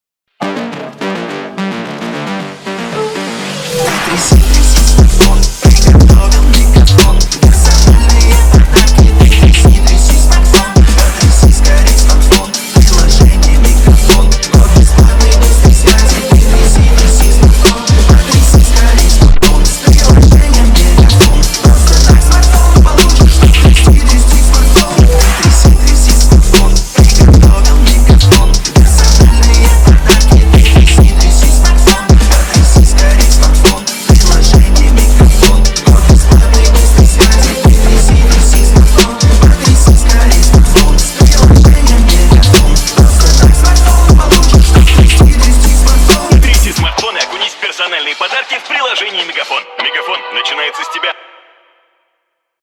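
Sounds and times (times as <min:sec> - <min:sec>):
phonk music: 0:00.3 - 0:51.5.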